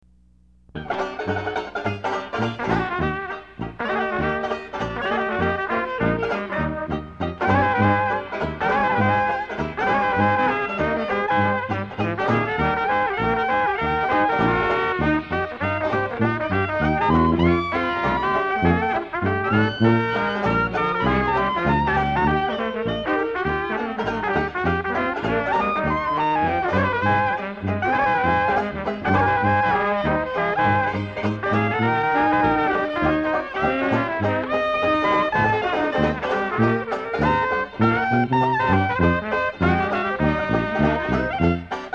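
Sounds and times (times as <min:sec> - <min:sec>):
orchestra and bands playing ragtime: 0:00.0 - 0:41.9.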